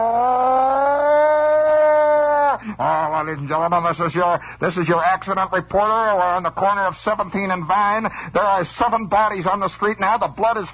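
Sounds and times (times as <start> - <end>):
siren wailing: 0.0 - 2.6
speech: 2.8 - 10.7.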